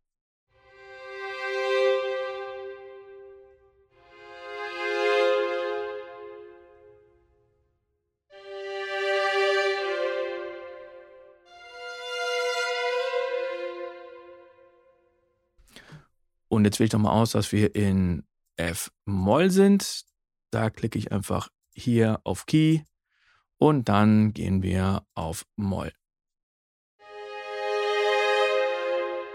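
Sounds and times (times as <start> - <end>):
violins playing a slow descending line: 0.6 - 7.0, 8.3 - 15.0, 27.0 - 29.3
speech: 16.6 - 22.9, 23.6 - 26.0.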